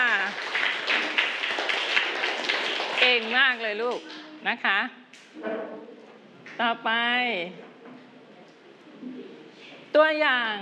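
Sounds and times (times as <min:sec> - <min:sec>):
students clapping in a classroom after a presentation: 0:00.0 - 0:04.3
speech: 0:03.2 - 0:06.0, 0:06.6 - 0:07.7, 0:09.9 - 0:10.6.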